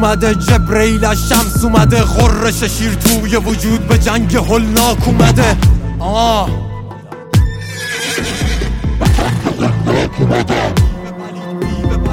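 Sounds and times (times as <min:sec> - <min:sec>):
speech: 0:00.0 - 0:06.7, 0:10.1 - 0:10.8
horse neighing: 0:07.6 - 0:10.8.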